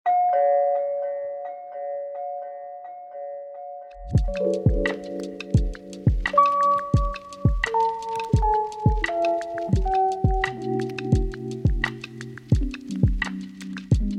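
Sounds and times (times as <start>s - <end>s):
doorbell chiming: 0.1s - 4.9s
sharp ticking: 3.9s - 14.1s
low thumps: 4.0s - 14.1s.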